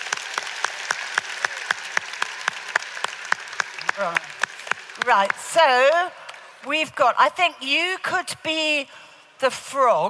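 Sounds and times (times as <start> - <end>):
audience clapping: 0.0 - 6.7
speech: 4.0 - 4.4, 5.0 - 10.0.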